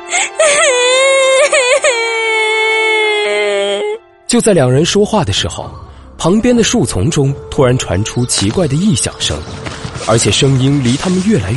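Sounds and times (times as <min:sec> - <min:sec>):
girl crying: 0:00.0 - 0:04.0
speech: 0:04.3 - 0:11.5.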